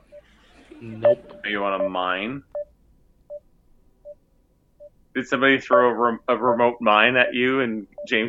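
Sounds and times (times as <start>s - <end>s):
low hum: 0.0s - 8.2s
speech: 0.8s - 2.6s, 5.2s - 8.2s
short electronic beeps: 0.9s - 2.7s, 6.4s - 8.2s.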